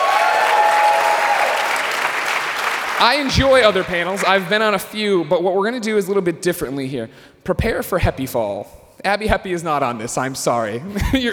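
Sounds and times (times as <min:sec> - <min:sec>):
crowd applauding: 0:00.0 - 0:05.0
speech: 0:03.0 - 0:11.3.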